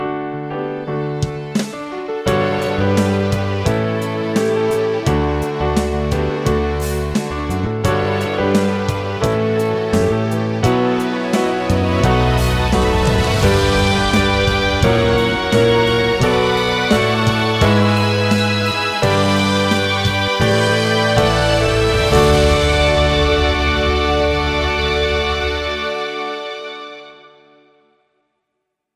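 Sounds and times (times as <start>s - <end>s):
advertising music playback: 0.2s - 27.9s.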